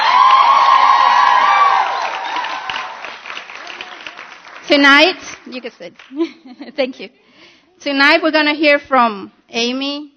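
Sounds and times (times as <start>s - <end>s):
audience cheering: 0.0s - 4.5s
audience applause: 0.0s - 6.1s
speech: 4.7s - 10.1s.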